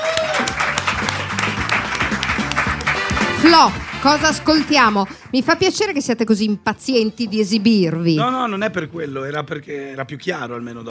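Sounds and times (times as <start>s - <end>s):
studio audience applause: 0.0s - 5.6s
speech: 3.4s - 10.8s.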